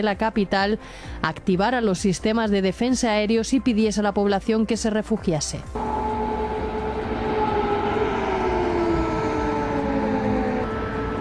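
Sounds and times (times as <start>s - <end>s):
speech: 0.0s - 6.0s
air raid sirens wailing: 5.8s - 11.1s.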